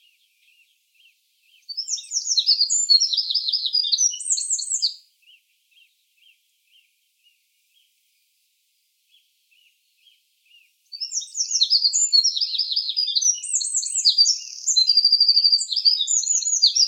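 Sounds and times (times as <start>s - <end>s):
Eurasian wren Troglodytes troglodytes song: 0.0s - 8.0s, 9.1s - 16.8s.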